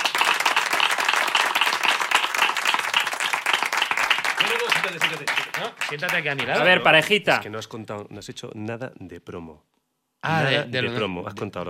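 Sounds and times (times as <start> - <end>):
audience applause: 0.0 - 6.8
speech: 4.6 - 11.6.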